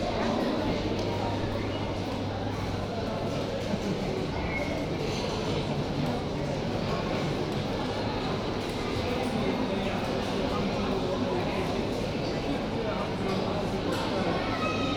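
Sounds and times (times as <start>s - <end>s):
café murmur of voices in the Oxford University Museum of Natural History: 0.0s - 14.9s.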